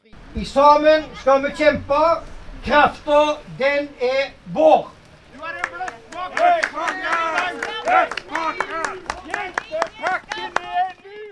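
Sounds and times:
speech: 0.4 - 5.0, 7.8 - 10.6
audience clapping: 5.3 - 11.3
crowd booing: 5.3 - 11.3.

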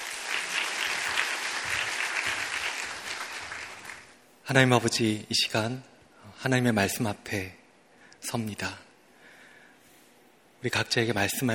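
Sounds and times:
audience applause: 0.0 - 4.2
speech: 4.5 - 7.6, 8.2 - 8.8, 10.6 - 11.5.

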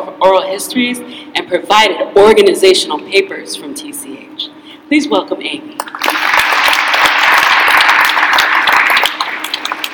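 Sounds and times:
speech: 0.2 - 6.3
audience applause: 5.8 - 9.9.

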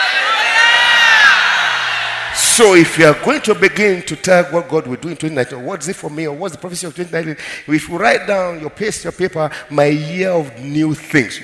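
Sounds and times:
audience shouting hallelujah together: 0.0 - 3.0
speech: 2.6 - 11.4.

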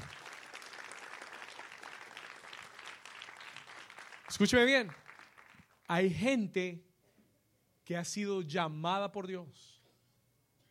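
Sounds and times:
audience applauding: 0.0 - 5.9
speech: 4.3 - 5.0, 5.9 - 6.9, 7.9 - 9.8.

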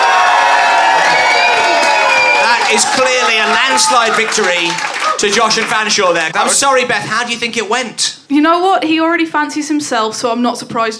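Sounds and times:
studio audience applauding and cheering: 0.0 - 6.8
speech: 2.7 - 10.9.

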